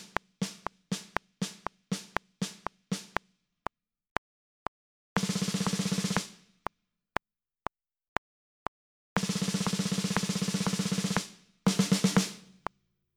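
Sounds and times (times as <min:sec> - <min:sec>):
snare drum: 0:00.0 - 0:03.3, 0:05.2 - 0:06.4, 0:09.2 - 0:12.6.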